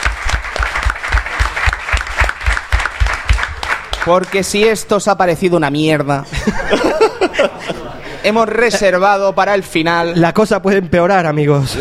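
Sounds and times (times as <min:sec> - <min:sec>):
audience applause in a bar: 0:00.0 - 0:04.7
speech: 0:04.0 - 0:11.7
laughter: 0:06.2 - 0:09.0.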